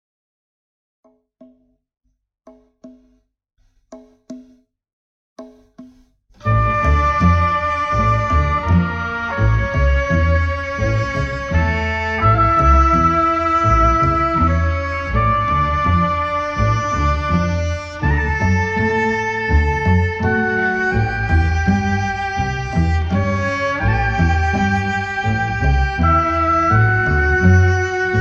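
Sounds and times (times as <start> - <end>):
cello: 6.4 - 28.1
orchestra: 6.4 - 28.1.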